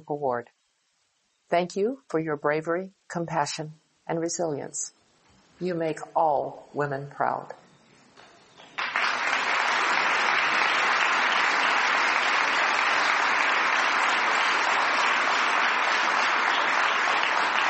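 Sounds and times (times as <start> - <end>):
speech: 0.0 - 0.6, 1.5 - 5.0, 5.6 - 7.6
audience applause: 8.7 - 17.6.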